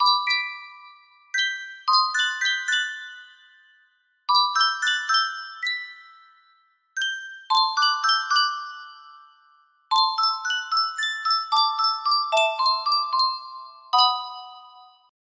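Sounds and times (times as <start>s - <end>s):
Sankyo custom tune music box melody: 0.0s - 15.1s.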